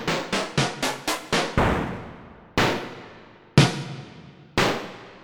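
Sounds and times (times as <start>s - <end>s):
stacked snare drum hits: 0.2s - 2.0s, 3.6s - 4.9s.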